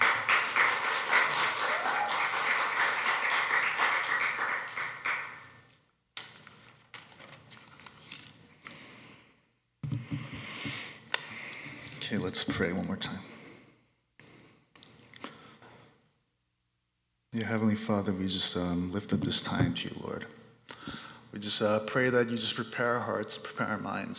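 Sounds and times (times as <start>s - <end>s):
audience applause welcoming a pastor: 0.0s - 5.5s
speech: 12.1s - 13.4s, 17.4s - 20.4s, 21.4s - 24.1s.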